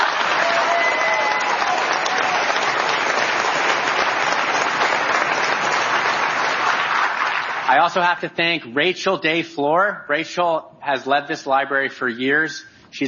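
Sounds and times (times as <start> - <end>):
crowd applauding: 0.0 - 7.9
speech: 7.7 - 13.0.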